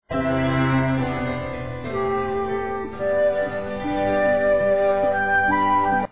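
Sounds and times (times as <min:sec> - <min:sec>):
flute: 0:00.1 - 0:06.0.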